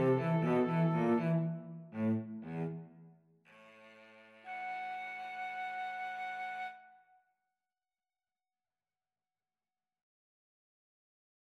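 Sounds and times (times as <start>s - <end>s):
flute: 0.0s - 1.8s, 4.4s - 7.2s
cello: 0.0s - 6.7s.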